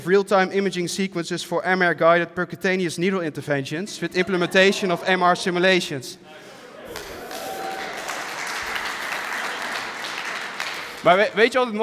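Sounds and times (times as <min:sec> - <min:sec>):
speech: 0:00.0 - 0:07.1, 0:11.0 - 0:11.8
audience applause: 0:06.9 - 0:11.1.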